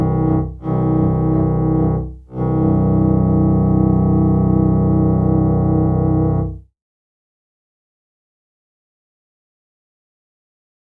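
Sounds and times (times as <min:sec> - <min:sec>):
FM synthesizer double bass played with bow strokes: 0:00.0 - 0:06.6.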